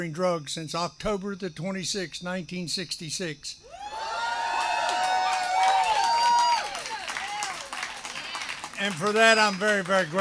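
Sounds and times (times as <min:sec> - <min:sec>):
speech: 0:00.0 - 0:04.0, 0:08.8 - 0:10.1
shrill whistles and whoops: 0:03.6 - 0:07.8
audience cheering: 0:03.7 - 0:10.1
audience applause: 0:04.0 - 0:10.1.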